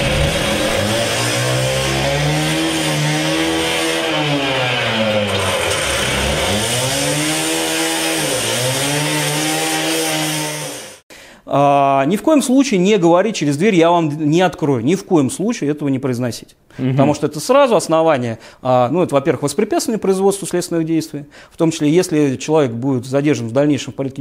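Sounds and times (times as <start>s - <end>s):
angle grinder cutting through a door during a search: 0.0s - 11.0s
speech: 12.0s - 24.1s.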